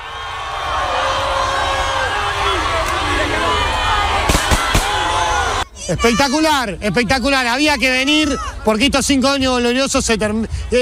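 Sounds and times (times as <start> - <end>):
large street crowd of football fans roaring and cheering: 0.0 - 10.8
sharp bangs: 4.2 - 5.2
speech: 5.9 - 10.8.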